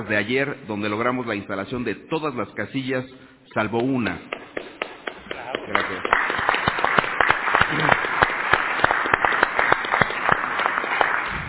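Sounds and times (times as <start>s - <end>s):
speech: 0.0s - 4.6s, 5.7s - 6.2s
audience applause: 4.8s - 11.4s.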